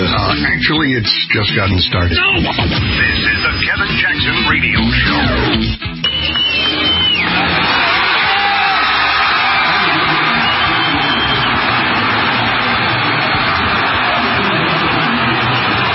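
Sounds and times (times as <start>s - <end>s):
speech: 0.1s - 5.9s
crowd clapping and cheering: 5.8s - 15.9s
shrill whistle: 5.9s - 7.5s, 9.6s - 11.7s.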